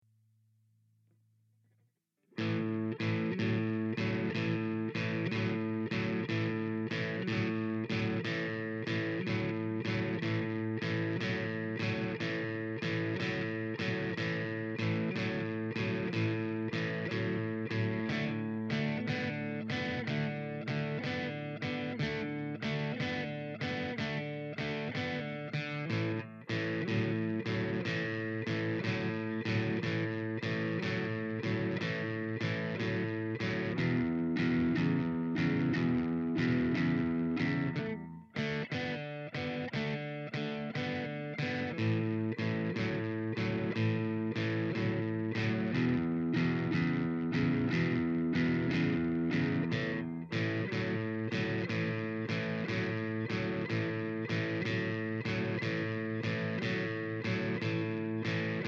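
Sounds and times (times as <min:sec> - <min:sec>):
blues music in A: 0:02.4 - 0:58.6.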